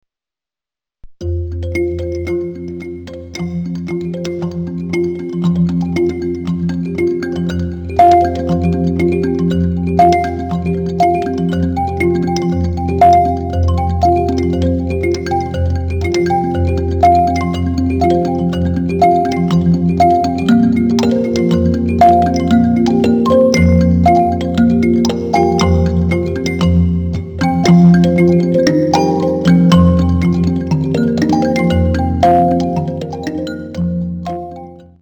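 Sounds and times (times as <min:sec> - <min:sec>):
array mbira solo: 0:01.2 - 0:34.8.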